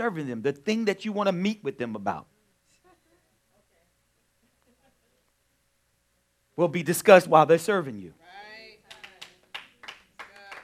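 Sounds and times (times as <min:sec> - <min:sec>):
speech: 0:00.0 - 0:02.3, 0:06.6 - 0:08.2
scattered claps: 0:08.9 - 0:10.6.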